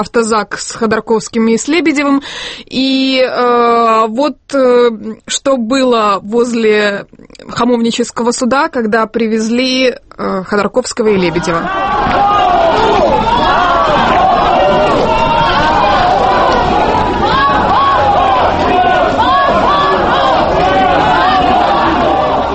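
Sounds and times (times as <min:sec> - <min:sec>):
speech: 0:00.0 - 0:13.4
crowd outside courthouse cheering and applauding: 0:11.4 - 0:22.5.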